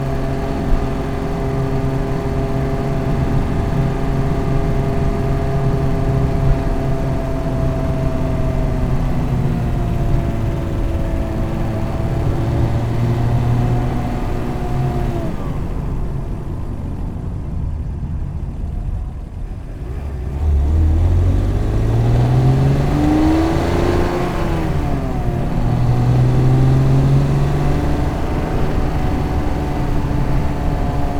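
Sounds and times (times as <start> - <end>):
BMW E46 3 Series car engine accelerating: 0.0 - 31.1.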